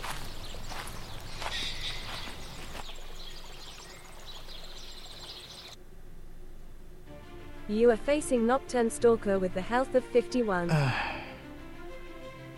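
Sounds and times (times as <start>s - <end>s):
video game footsteps walking forward: 0.0s - 3.2s
bird calls chirping: 0.0s - 5.8s
outdoor ambience: 0.0s - 8.1s
speech: 7.7s - 11.1s.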